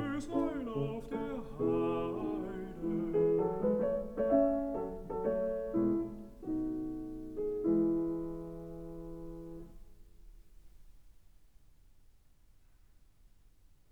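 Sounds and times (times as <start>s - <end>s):
person singing: 0.0s - 3.9s
piano: 0.0s - 11.9s.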